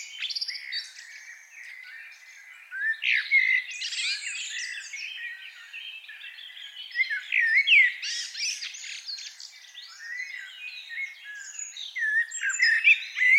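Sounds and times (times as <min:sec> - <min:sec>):
Eurasian blackbird singing: 0:00.0 - 0:13.3.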